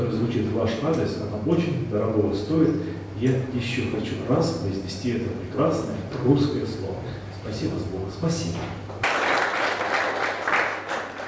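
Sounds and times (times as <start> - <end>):
speech: 0.0 - 8.9
audience applause in a hall during a thank-you ceremony: 9.0 - 11.2.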